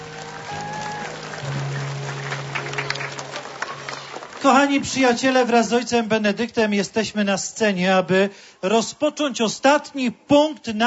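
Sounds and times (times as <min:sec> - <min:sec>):
audience clapping: 0:00.0 - 0:05.6
speech: 0:04.4 - 0:10.8.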